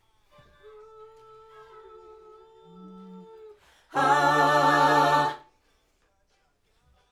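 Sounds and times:
backing vocals on AKG microphone: 3.9 - 5.4.

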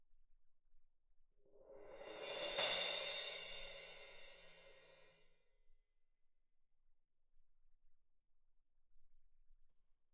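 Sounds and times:
percussion: 1.6 - 5.1.

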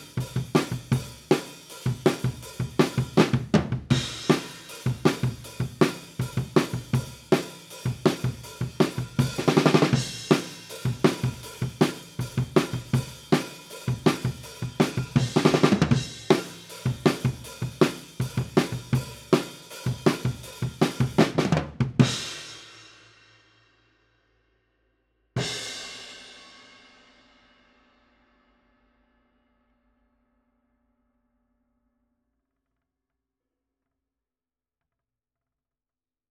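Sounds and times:
drum kit: 0.0 - 23.0, 25.4 - 27.0.

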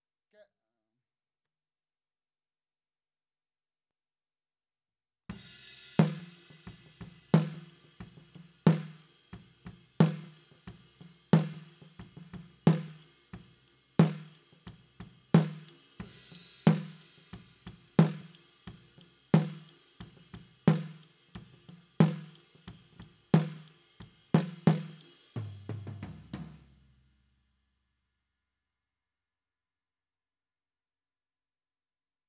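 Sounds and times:
snare drum: 5.3 - 26.8.

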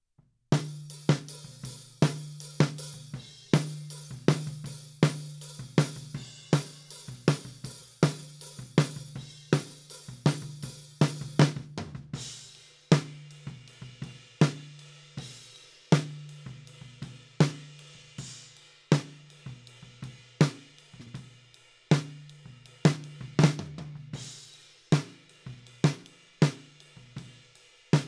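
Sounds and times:
snare drum recorded from the top: 0.6 - 13.5, 15.2 - 16.3, 17.4 - 17.8, 18.9 - 19.3, 20.4 - 21.2, 21.9 - 27.3.

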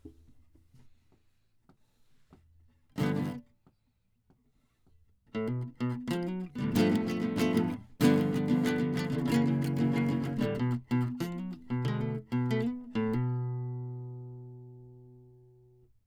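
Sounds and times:
classical guitar: 3.0 - 3.4, 5.4 - 15.8.

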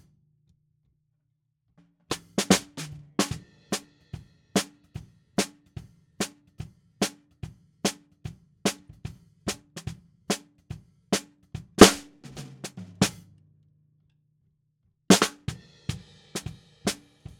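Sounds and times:
snare drum: 2.1 - 3.9, 5.4 - 6.4, 7.0 - 10.5, 11.1 - 13.2, 15.1 - 17.3.

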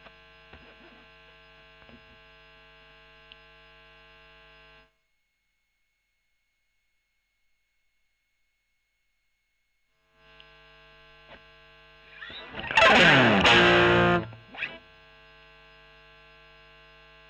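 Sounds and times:
overdriven electric guitar recorded with Gefell: 11.2 - 14.8.

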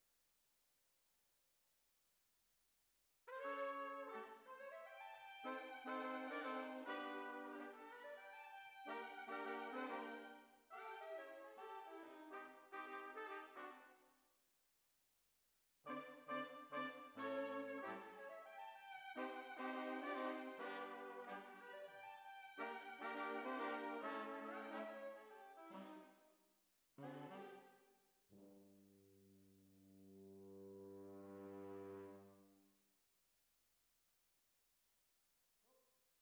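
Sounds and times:
horns: 3.3 - 13.9, 15.9 - 18.6, 19.2 - 26.1, 27.0 - 27.7, 30.2 - 32.5.

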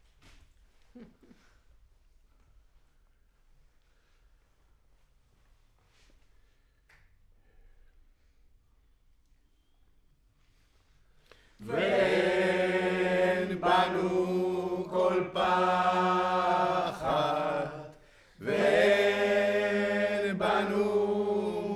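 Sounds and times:
choir singing: 11.6 - 21.7.

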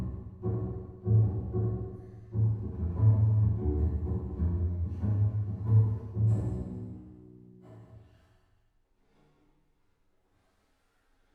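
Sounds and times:
bass: 0.0 - 7.9.

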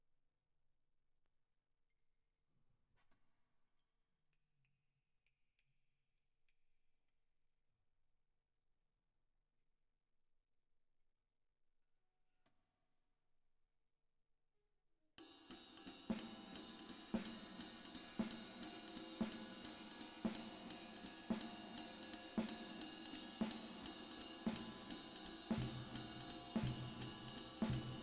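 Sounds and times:
drums with reverb: 15.2 - 28.0.

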